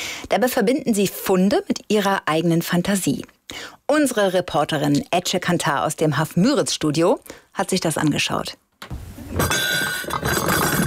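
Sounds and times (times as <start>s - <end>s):
speech: 0.3s - 10.6s
white gold-rimmed porcelain dishes set down on cardboard, clinking: 9.4s - 10.8s.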